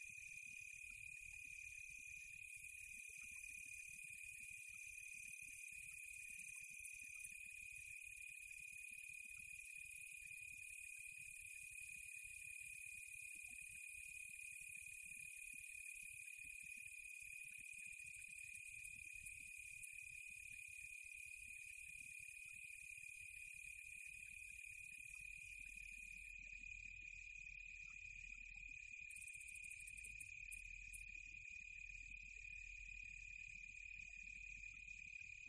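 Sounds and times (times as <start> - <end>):
crickets chirping on a quiet tropical night: 0.0 - 35.4.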